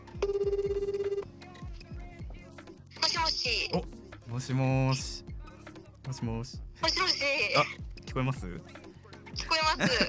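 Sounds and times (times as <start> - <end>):
outgoing phone call ringback tone: 0.1 - 1.3
speech: 3.4 - 5.3, 6.1 - 10.0
laughter: 9.4 - 10.0.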